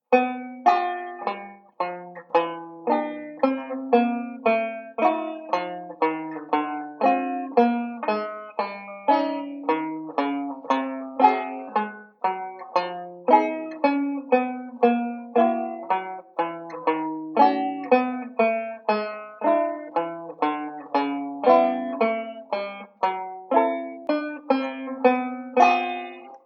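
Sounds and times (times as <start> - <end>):
banjo: 0.0 - 26.4.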